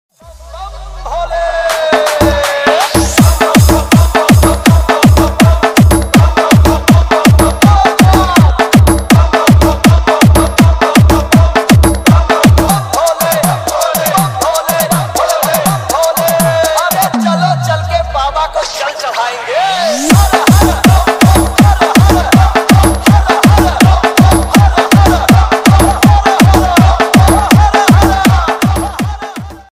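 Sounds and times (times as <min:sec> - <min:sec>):
devotional DJ remix ringtone: 0:01.2 - 0:18.1, 0:19.7 - 0:29.7.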